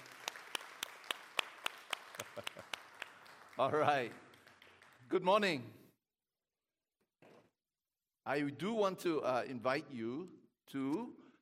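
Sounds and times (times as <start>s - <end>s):
audience applause: 0.0s - 5.1s
speech: 2.3s - 2.8s, 3.6s - 4.2s, 5.1s - 5.8s, 8.2s - 11.2s.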